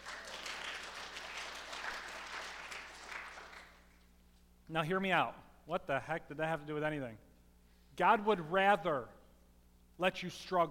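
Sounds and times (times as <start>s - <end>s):
crowd applauding: 0.0s - 4.0s
speech: 4.7s - 7.3s, 8.0s - 9.2s, 10.0s - 10.6s.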